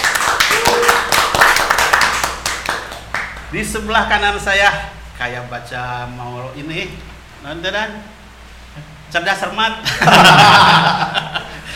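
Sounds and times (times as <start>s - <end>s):
audience clapping: 0.0s - 3.6s
speech: 3.5s - 11.2s
laughter: 9.8s - 11.7s.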